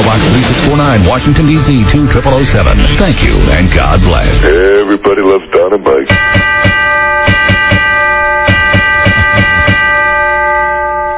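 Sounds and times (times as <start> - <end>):
speech: 0.9 - 6.6
bell ringing: 6.1 - 11.1.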